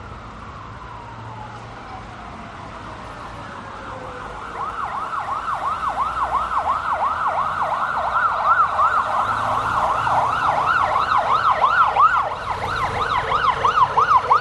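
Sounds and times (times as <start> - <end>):
police sirens of a presidential motorcade escort in Vietnam: 0.0 - 14.4
police motorcycles of a presidential motorcade passing in Vietnam: 7.0 - 14.4.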